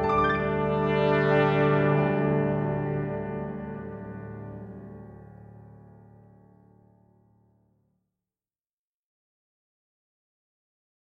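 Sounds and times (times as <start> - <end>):
brass instruments: 0.0 - 5.1.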